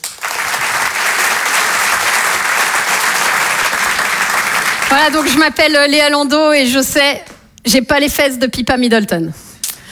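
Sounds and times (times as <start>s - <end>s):
audience applause: 0.0s - 5.4s
speech: 4.9s - 9.4s.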